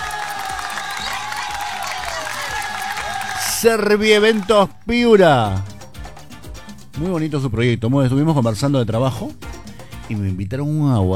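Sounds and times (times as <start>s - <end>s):
applause: 0.0s - 4.7s
speech: 3.6s - 5.7s, 7.0s - 9.5s, 10.1s - 11.1s.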